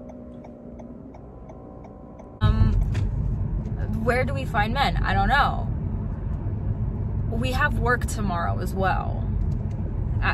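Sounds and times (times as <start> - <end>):
car driving around at night with engine and road rumble: 0.0 - 10.3
speech: 4.0 - 5.7, 7.4 - 9.2.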